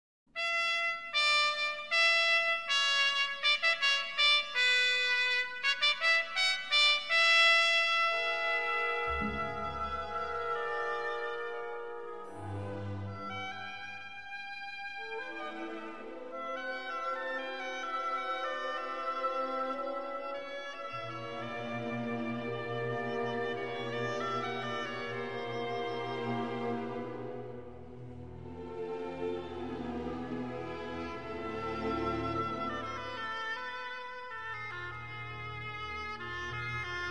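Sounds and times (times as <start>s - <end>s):
Turkish symphonic music: 0.9s - 37.0s.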